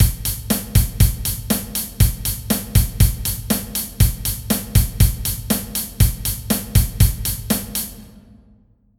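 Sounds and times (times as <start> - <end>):
drum kit rhythm: 0.0 - 8.4.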